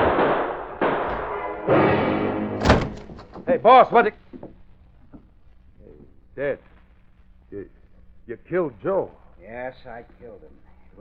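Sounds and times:
gunshots: 0.0s - 3.4s
speech: 1.7s - 1.9s, 3.5s - 4.3s, 6.4s - 6.7s, 7.5s - 10.6s.

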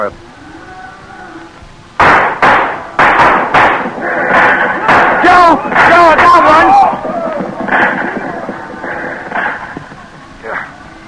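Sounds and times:
speech: 0.0s - 0.3s
steady rough hiss: 0.0s - 11.0s
gunshots in a shootout: 2.0s - 9.6s.

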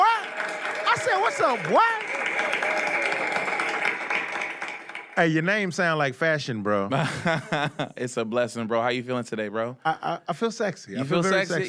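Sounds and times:
scattered cheers and voices: 0.0s - 4.7s
audience applause welcoming a guest: 0.0s - 5.4s
speech: 1.0s - 2.8s, 5.2s - 11.6s
laughter: 6.9s - 8.0s.

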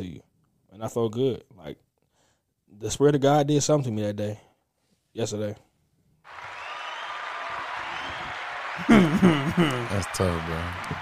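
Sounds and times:
speech: 0.0s - 1.9s, 2.7s - 4.5s, 5.2s - 5.7s, 8.8s - 11.0s
round of applause: 6.3s - 11.0s
laughter: 7.3s - 11.0s.

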